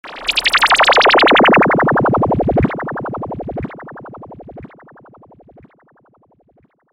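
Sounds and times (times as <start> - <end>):
laser sound: 0.1 - 4.0.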